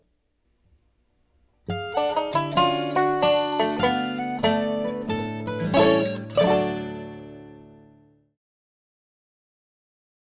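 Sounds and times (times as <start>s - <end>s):
banjo rag: 1.7s - 8.0s.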